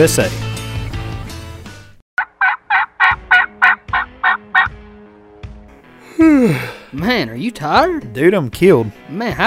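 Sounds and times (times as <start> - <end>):
speech: 0.0 - 0.4, 6.9 - 9.4
turkey gobble call: 2.2 - 4.8.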